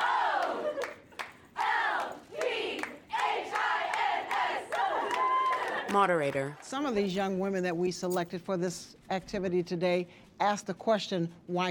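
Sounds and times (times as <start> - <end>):
girls cheering together in a circle: 0.0 - 1.0, 1.6 - 5.9
speech: 5.9 - 11.6.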